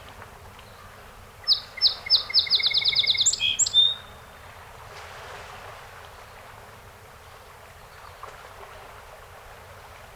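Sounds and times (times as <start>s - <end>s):
song sparrow song: 1.4s - 4.2s.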